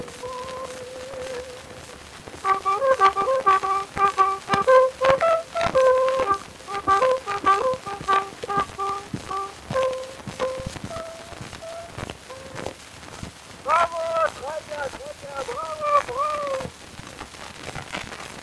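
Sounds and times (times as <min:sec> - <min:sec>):
bugle: 0:02.4 - 0:12.6, 0:13.7 - 0:16.6.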